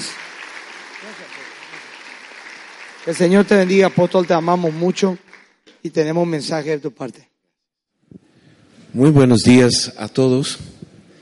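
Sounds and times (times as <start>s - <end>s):
audience applause: 0.0s - 6.2s
speech: 1.0s - 1.9s, 3.0s - 5.2s, 5.8s - 7.3s, 8.9s - 10.8s.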